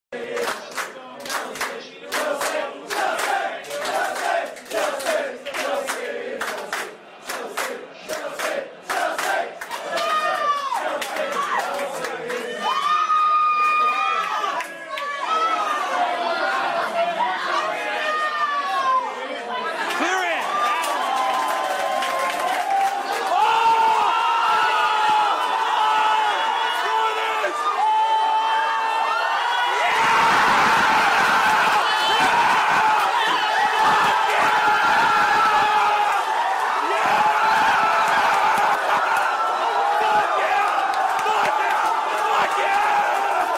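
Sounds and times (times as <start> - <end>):
crowd chorus: 0.1 - 13.2, 14.2 - 43.5.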